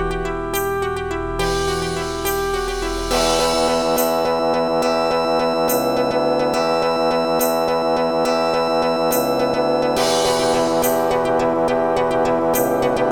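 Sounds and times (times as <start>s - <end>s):
bells ringing: 0.1s - 13.0s.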